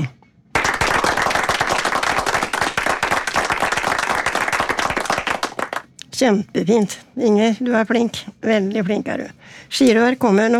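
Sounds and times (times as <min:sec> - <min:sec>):
people clapping: 0:00.5 - 0:05.9
speech: 0:06.2 - 0:10.5.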